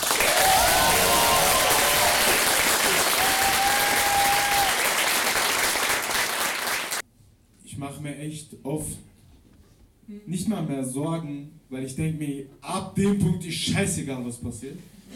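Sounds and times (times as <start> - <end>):
crowd applauding: 0.0 - 7.0
speech: 8.2 - 9.1, 10.1 - 15.1.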